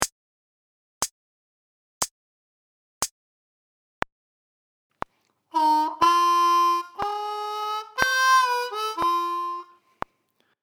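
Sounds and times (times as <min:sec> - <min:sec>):
slow harmonica lick: 0:05.5 - 0:10.1.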